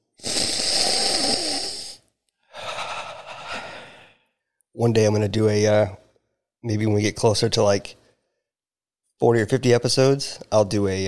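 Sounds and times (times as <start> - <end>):
nose sniffing: 0.0 - 2.0
speech: 4.8 - 6.0, 6.6 - 8.0, 9.2 - 11.0.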